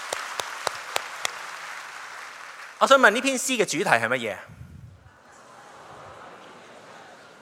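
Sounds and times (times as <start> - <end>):
audience clapping in unison: 0.0 - 3.4
speech: 2.8 - 4.6.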